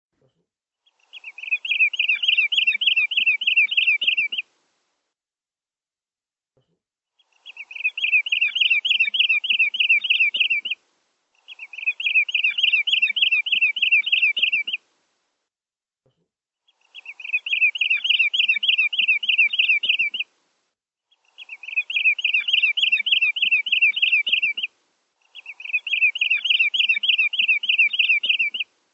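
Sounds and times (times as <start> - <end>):
bird giving looping chirps: 0.8 - 4.5, 7.2 - 14.8, 16.6 - 20.3, 21.1 - 28.7.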